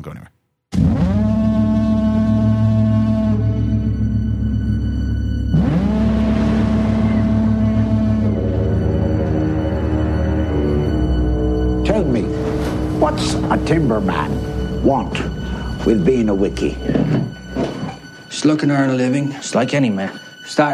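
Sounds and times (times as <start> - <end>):
speech: 0.0 - 0.4, 13.0 - 17.2, 18.3 - 20.7
deep foghorn blasts from the trailer for the film The Lighthouse: 0.8 - 19.2
constant low droning rumble: 2.0 - 18.2.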